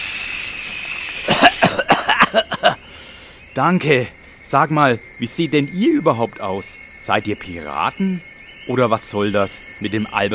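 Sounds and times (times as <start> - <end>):
mosquito repellent spray can hissing: 0.0 - 1.8
speech: 1.8 - 2.8, 3.6 - 10.3.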